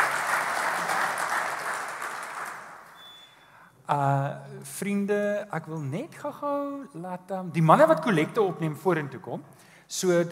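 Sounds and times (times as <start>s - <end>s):
audience applause: 0.0s - 3.0s
speech: 3.9s - 10.3s.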